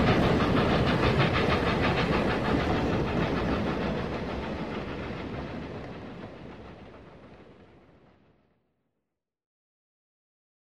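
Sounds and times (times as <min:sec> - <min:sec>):
steam locomotive: 0:00.0 - 0:08.4.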